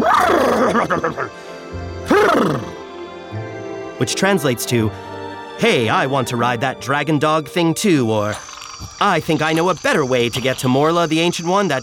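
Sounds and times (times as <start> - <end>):
human voice imitating the neigh of Artax, a white horse: 0.0 - 1.3, 2.1 - 2.7
speech: 0.7 - 1.8, 4.0 - 11.8.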